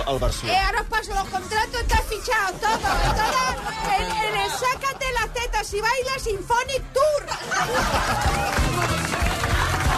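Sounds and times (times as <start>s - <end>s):
speech: 0.1s - 9.3s
people laughing: 2.4s - 5.4s, 7.3s - 9.7s
audience applauding: 3.6s - 4.6s, 7.5s - 9.9s.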